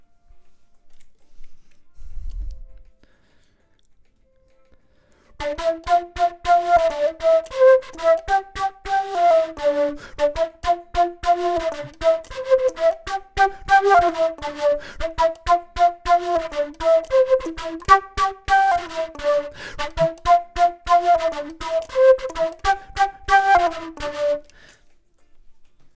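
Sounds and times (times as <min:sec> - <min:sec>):
flute: 0:05.4 - 0:24.8.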